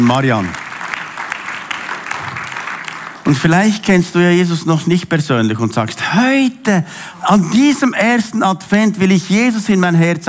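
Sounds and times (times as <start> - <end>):
speech: 0.0 - 0.6, 3.3 - 10.2
audience applauding: 0.0 - 3.5.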